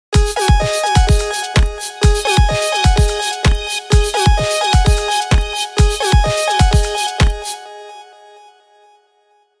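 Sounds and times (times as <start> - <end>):
disco house ringtone: 0.2 - 7.6.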